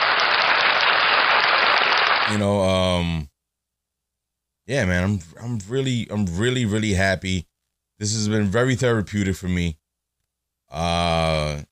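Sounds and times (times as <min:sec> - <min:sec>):
applause sound effect: 0:00.0 - 0:02.4
speech: 0:02.3 - 0:03.3, 0:04.7 - 0:09.8, 0:10.7 - 0:11.7.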